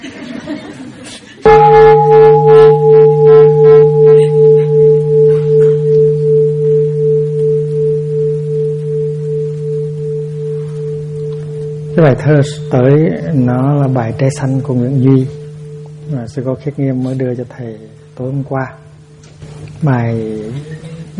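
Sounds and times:
laughter: 0.0 - 1.4
bell ringing: 1.5 - 17.0
speech: 12.0 - 15.4, 16.2 - 18.8, 19.8 - 21.1.

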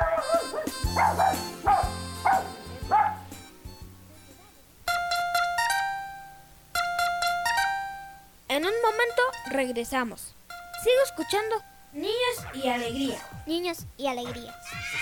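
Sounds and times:
dog barking: 0.0 - 3.3
low humming musical bed: 0.0 - 15.0
speech: 9.6 - 15.0.

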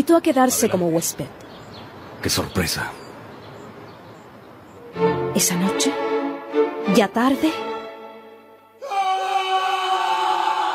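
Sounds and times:
speech: 0.0 - 1.6, 2.2 - 3.0, 5.0 - 7.7
scream echoing through the house: 8.8 - 10.7.

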